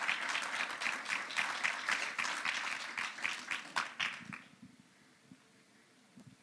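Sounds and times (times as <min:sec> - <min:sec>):
audience applause: 0:00.0 - 0:04.5.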